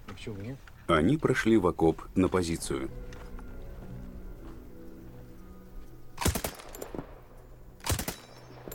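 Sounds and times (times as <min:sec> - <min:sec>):
speech: 0:00.2 - 0:03.2
automatic rifle test-fired from a trench position: 0:06.2 - 0:07.0, 0:07.8 - 0:08.7.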